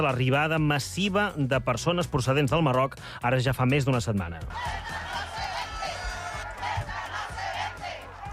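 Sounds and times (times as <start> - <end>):
speech: 0.0 - 5.0
protest crowd chanting: 4.5 - 8.3.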